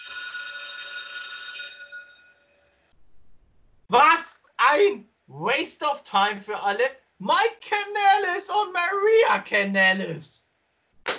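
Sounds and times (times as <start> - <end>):
single bell strike: 0.0 - 2.6
speech: 3.9 - 10.5.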